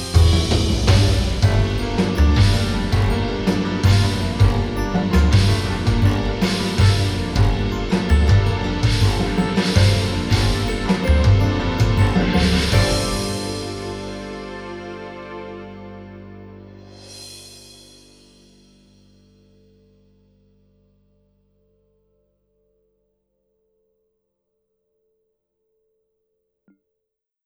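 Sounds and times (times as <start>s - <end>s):
church mallet striking: 0.1s - 13.8s.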